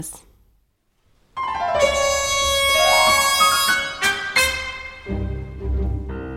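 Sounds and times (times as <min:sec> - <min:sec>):
concerto for piano, trumpet and strings: 0:01.4 - 0:06.3.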